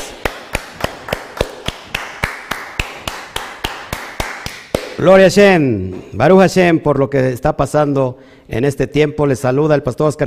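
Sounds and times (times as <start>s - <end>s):
audience applause: 0.0s - 4.9s
speech: 5.0s - 10.2s.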